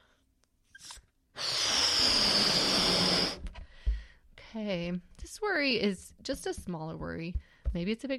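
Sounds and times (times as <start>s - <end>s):
blowing up a balloon by mouth: 0.7s - 3.6s
speech: 4.6s - 8.1s.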